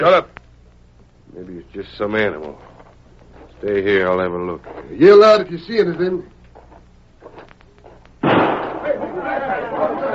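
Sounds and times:
speech: 0:00.0 - 0:00.4, 0:01.3 - 0:02.7, 0:03.6 - 0:06.4
gunshot: 0:08.2 - 0:09.0.

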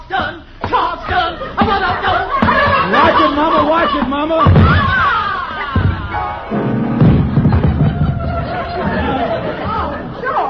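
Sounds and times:
speech: 0:00.1 - 0:02.2
crowd chattering: 0:00.7 - 0:10.4
laughter: 0:00.7 - 0:10.4
heavy body thudding into a piano: 0:04.5 - 0:09.2.

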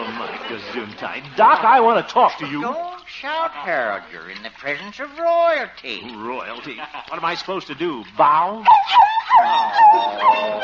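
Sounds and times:
laughter: 0:00.0 - 0:02.9, 0:06.2 - 0:07.6, 0:09.0 - 0:10.6
speech: 0:00.5 - 0:10.6
Pekingese dog whimpering during bath: 0:08.6 - 0:10.6.

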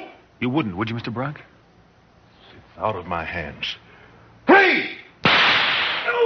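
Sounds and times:
speech: 0:00.4 - 0:01.5, 0:02.8 - 0:03.9
gunshot fired from a gun in a drama: 0:05.2 - 0:06.1.

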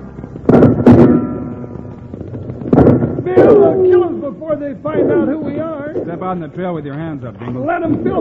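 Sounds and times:
angry crowd firing guns wildly: 0:00.0 - 0:06.4
speech: 0:03.3 - 0:08.1.

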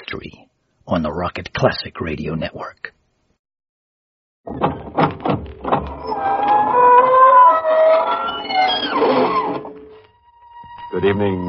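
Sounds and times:
speech: 0:00.1 - 0:03.0, 0:04.4 - 0:05.5, 0:10.9 - 0:11.4
squeaking door opening slowly: 0:04.5 - 0:11.0.

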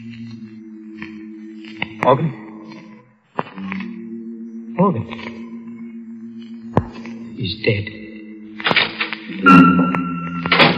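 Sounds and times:
speech: 0:02.0 - 0:02.4, 0:04.8 - 0:05.4, 0:07.4 - 0:08.0
front door opening and closing: 0:08.6 - 0:10.7.

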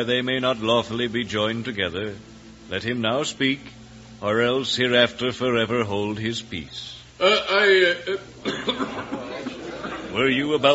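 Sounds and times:
speech: 0:00.0 - 0:09.3, 0:10.2 - 0:10.7
laughter: 0:07.2 - 0:10.7
man coughing during a wedding ceremony: 0:08.1 - 0:09.2.

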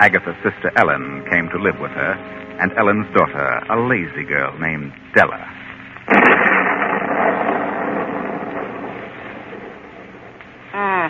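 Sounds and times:
speech: 0:00.0 - 0:05.6
thunder of an approaching storm: 0:06.1 - 0:10.6.

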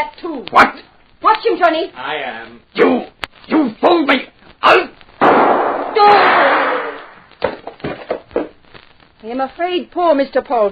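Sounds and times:
speech: 0:00.0 - 0:04.9, 0:09.2 - 0:10.6
gunshot from a man firing: 0:05.2 - 0:08.0.

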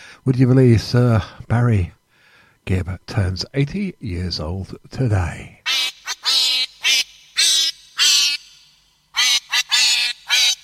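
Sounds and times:
speech: 0:00.2 - 0:02.0, 0:02.6 - 0:05.6
duck quacking: 0:05.7 - 0:08.5, 0:09.1 - 0:10.6.

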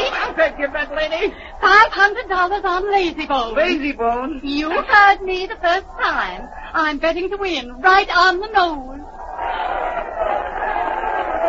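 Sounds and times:
laughter: 0:00.0 - 0:05.3, 0:09.2 - 0:11.4
speech: 0:00.4 - 0:09.7
racetrack crowd yelling: 0:09.0 - 0:11.4.

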